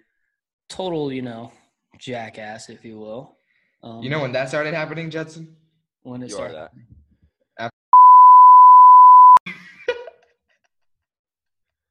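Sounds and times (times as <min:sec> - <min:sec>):
speech: 0:00.7 - 0:07.0
censor bleep: 0:07.9 - 0:09.4.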